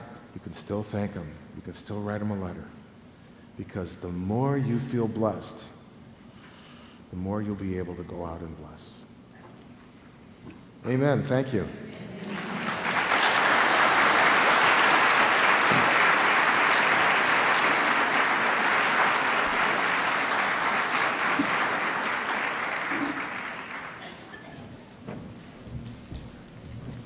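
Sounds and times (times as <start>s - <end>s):
speech: 0.5s - 2.8s, 3.6s - 5.8s, 7.1s - 9.0s, 10.4s - 11.8s
audience applause: 12.2s - 24.5s.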